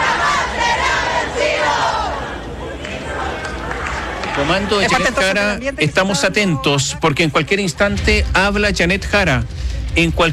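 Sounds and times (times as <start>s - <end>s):
crowd shouting at campaign rally for candidate Jeannette Jara: 0.0s - 6.6s
speech: 4.4s - 10.3s.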